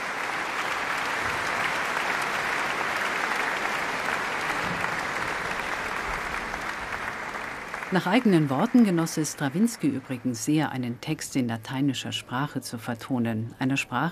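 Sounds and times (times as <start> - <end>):
concert hall audience applause: 0.0 - 10.6
speech: 7.9 - 14.1.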